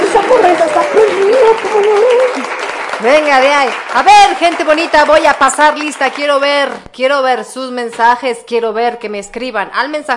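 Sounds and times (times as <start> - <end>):
applause: 0.0 - 6.8
speech: 1.5 - 10.1.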